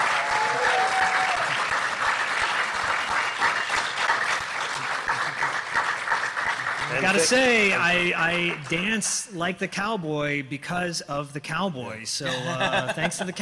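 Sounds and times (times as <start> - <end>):
audience applause: 0.0 - 9.0
laughter: 6.8 - 8.5, 12.2 - 13.3
speech: 7.0 - 13.3.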